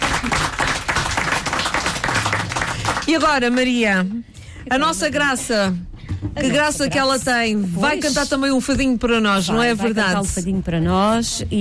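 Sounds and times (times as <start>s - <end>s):
audience applause: 0.0s - 3.6s
speech: 3.1s - 11.5s.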